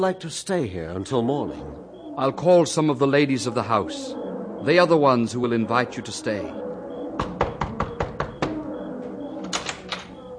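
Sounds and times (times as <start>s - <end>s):
speech: 0.0s - 7.3s
knocking on a door: 7.2s - 8.6s.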